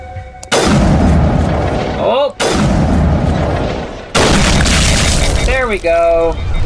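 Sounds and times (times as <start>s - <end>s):
video game sniper rifle shot: 0.5s - 5.5s
speech: 5.7s - 6.5s.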